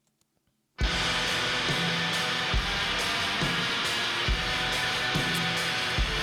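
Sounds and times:
black metal music track with distorted guitar and heavy drums: 0.8 - 6.2.

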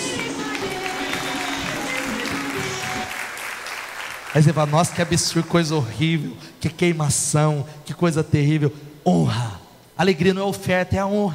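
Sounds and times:
audience applause: 0.0 - 6.0
speech: 4.4 - 11.3.

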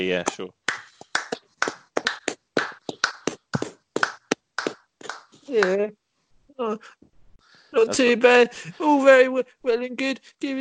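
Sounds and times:
speech: 0.0 - 0.6, 5.5 - 6.0, 6.6 - 10.5
hand clapping: 0.2 - 5.9.

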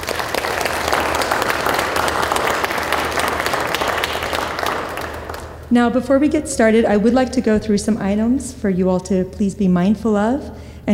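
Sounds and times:
audience applause: 0.0 - 5.7
speech: 5.7 - 10.9.

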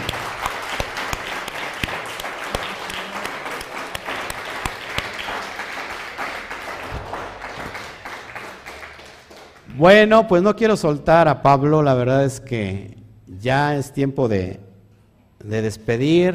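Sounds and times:
loud applause from a crowd: 0.0 - 9.8
speech: 9.8 - 14.6, 15.4 - 16.3.

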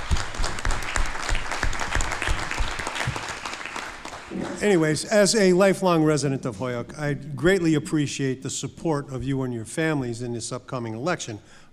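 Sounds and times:
crowd applause: 0.0 - 5.1
speech: 4.6 - 11.6.

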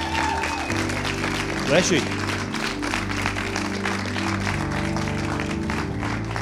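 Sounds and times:
audience applauding: 0.0 - 6.4
speech: 1.7 - 2.2.

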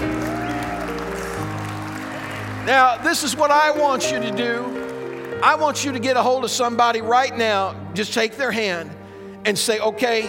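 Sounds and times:
audience clapping in praise: 0.0 - 6.8
sustained organ or keyboard chords: 0.0 - 10.2
speech: 2.7 - 4.8, 5.4 - 10.2.

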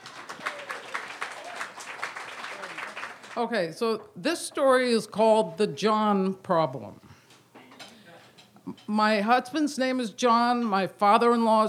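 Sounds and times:
audience applause as a storyteller is welcomed to the stage: 0.0 - 3.4
speech: 3.4 - 7.0, 8.8 - 11.6.

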